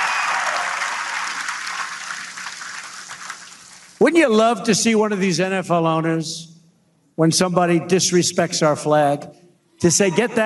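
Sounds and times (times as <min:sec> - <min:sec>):
arena crowd applauding: 0:00.0 - 0:04.0
speech: 0:04.0 - 0:06.5, 0:07.2 - 0:10.4.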